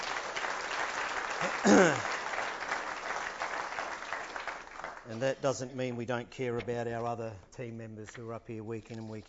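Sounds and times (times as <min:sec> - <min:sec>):
crowd clapping: 0:00.0 - 0:05.4
speech: 0:01.4 - 0:02.1, 0:05.1 - 0:09.2.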